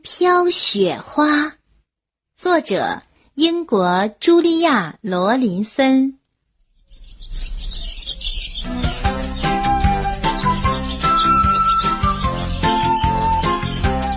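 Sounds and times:
speech: 0.2 - 1.6, 2.4 - 6.2
birds chirping and twittering in a spring forest: 6.6 - 14.1.

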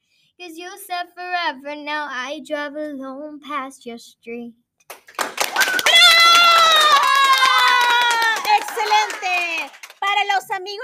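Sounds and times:
speech: 0.4 - 5.0, 9.6 - 10.8
studio audience applause: 4.9 - 10.3
studio audience cheering and whooping: 5.4 - 9.8.

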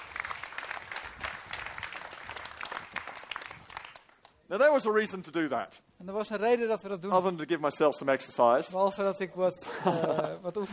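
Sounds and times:
audience applause: 0.0 - 4.3
speech: 4.5 - 10.7
laughter: 9.6 - 10.7.

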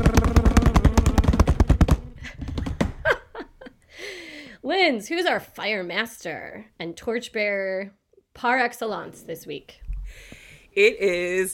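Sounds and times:
drum roll sound effect: 0.0 - 3.2
speech: 4.8 - 11.5.

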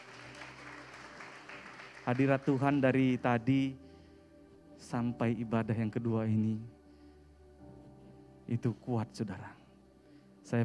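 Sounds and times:
audience applause: 0.0 - 2.9
speech: 2.1 - 3.8, 4.8 - 6.8, 8.5 - 9.6.

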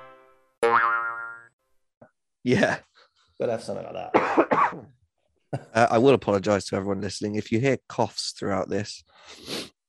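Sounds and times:
speech: 0.7 - 0.9, 2.5 - 2.9, 3.4 - 5.0, 5.5 - 9.6
springy cartoon boing sound effects: 0.7 - 1.5.

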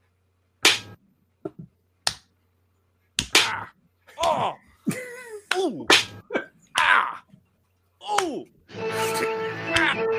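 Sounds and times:
man slapping his own face: 0.6 - 2.3, 3.2 - 4.5, 5.5 - 6.2, 6.8 - 7.1, 8.0 - 8.4, 9.7 - 10.0.

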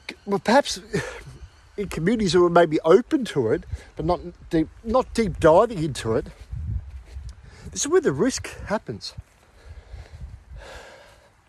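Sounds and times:
speech: 0.2 - 6.4, 7.7 - 9.3
big deep breath drawn by a person about to walk up a hill: 9.5 - 11.4.

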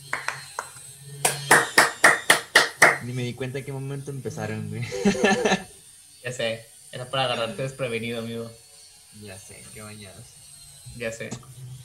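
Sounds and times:
applause: 0.1 - 3.0
speech: 3.1 - 5.7, 6.3 - 8.6, 9.2 - 11.6
laughter: 4.8 - 5.7.

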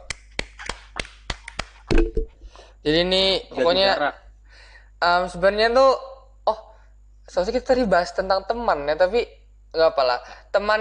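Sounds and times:
sharp hand claps: 0.0 - 2.2
speech: 2.8 - 4.2, 5.0 - 6.7, 7.3 - 10.7.

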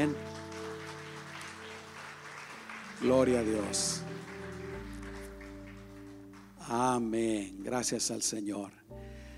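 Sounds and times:
speech: 0.0 - 0.3, 3.0 - 4.3, 6.7 - 9.0
audience applauding: 0.0 - 7.4.

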